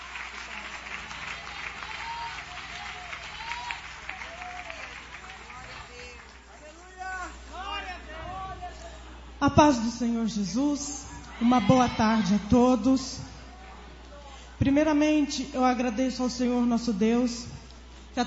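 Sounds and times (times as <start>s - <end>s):
audience applause: 0.0s - 7.7s
speech: 9.4s - 13.3s, 14.6s - 17.5s.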